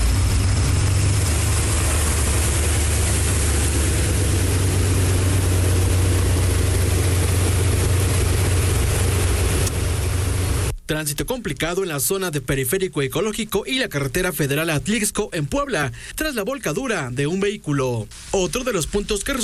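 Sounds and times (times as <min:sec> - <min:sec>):
public transport bus engine crossing a flooded street: 0:00.0 - 0:10.7
speech: 0:10.9 - 0:19.4.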